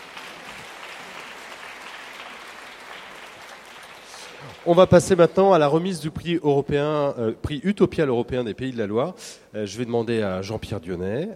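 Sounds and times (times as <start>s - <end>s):
audience applause: 0.0s - 5.3s
speech: 4.4s - 11.3s.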